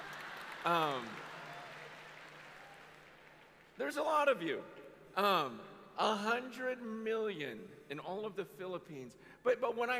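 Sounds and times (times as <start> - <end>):
crowd clapping: 0.0 - 4.1
speech: 0.6 - 1.3, 3.8 - 9.9.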